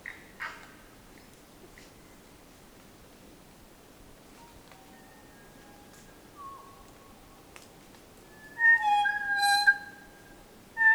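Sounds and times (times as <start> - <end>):
kokako singing: 8.5 - 10.0.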